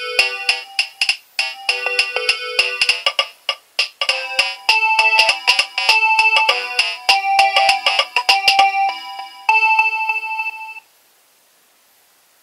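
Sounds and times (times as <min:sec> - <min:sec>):
Nokia 2300 ringtones: 0:00.0 - 0:03.1, 0:04.1 - 0:10.8.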